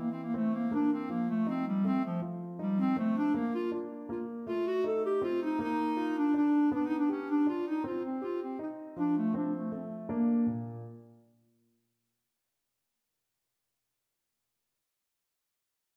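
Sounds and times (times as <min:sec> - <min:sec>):
clarinet scherzetto: 0:00.0 - 0:11.2.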